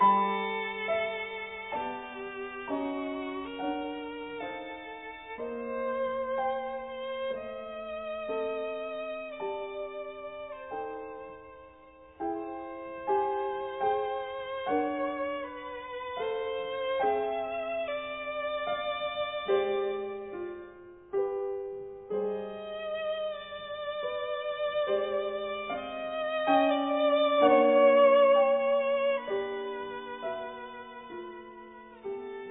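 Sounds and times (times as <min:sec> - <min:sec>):
violin: 0:00.0 - 0:32.4.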